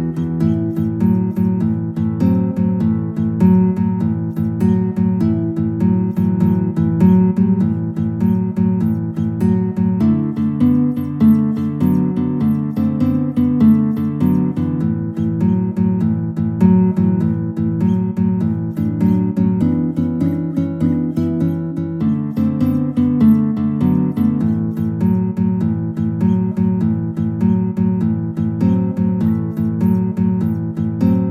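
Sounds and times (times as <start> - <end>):
blues guitar duet: 0.0 - 31.2.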